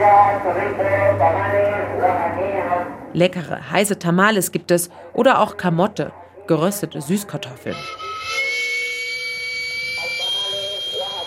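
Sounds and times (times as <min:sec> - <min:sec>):
speech: 0:00.0 - 0:02.2, 0:03.1 - 0:08.4
steam whistle of street food cart: 0:07.7 - 0:11.2.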